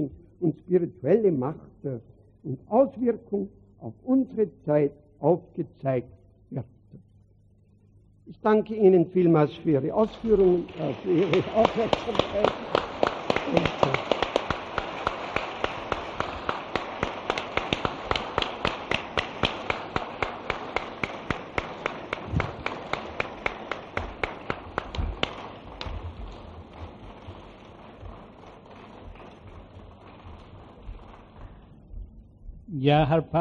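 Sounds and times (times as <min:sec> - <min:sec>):
speech: 0:00.0 - 0:07.0, 0:08.3 - 0:12.9, 0:33.0 - 0:33.3
audience applause: 0:10.0 - 0:31.6.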